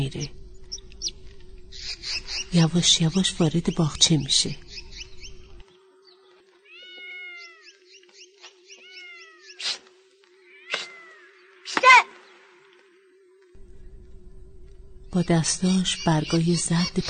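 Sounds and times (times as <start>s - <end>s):
speech: 0.0s - 0.4s, 2.5s - 4.6s, 15.2s - 17.0s
faint steady hum: 0.0s - 8.6s, 9.9s - 17.0s
cat meowing: 6.7s - 7.8s, 8.8s - 9.6s
cat yowling: 6.7s - 7.8s, 8.8s - 9.7s, 10.5s - 11.2s.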